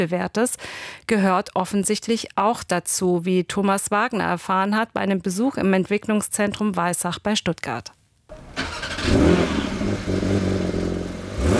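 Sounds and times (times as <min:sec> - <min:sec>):
speech: 0:00.0 - 0:10.5
Porsche 911 engine starting and revving: 0:08.3 - 0:11.5.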